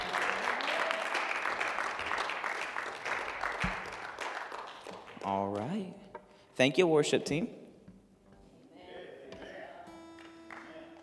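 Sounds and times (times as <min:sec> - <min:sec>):
audience clapping: 0:00.0 - 0:05.9, 0:10.0 - 0:11.0
speech: 0:06.6 - 0:07.6.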